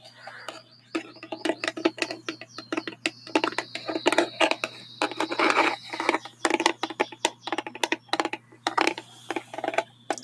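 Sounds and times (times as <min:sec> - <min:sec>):
thin high chirping tone: 0:00.2 - 0:08.2
fast tapping on a dry erase marker: 0:00.5 - 0:10.2.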